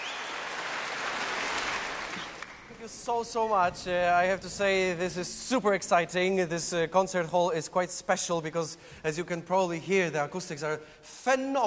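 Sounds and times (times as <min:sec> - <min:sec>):
concert audience applause: 0:00.0 - 0:03.3
speech: 0:02.9 - 0:11.6.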